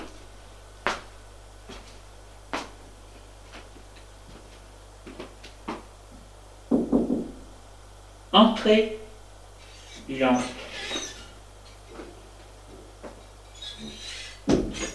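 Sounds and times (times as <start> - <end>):
quiet hiss: 0.0 - 14.9
knocking on a bedroom door: 6.7 - 7.4
speech: 8.4 - 9.0, 10.1 - 10.6.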